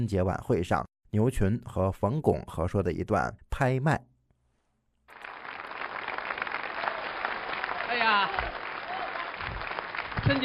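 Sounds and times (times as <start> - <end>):
speech: 0.0 - 4.1
audience applause: 5.1 - 10.4.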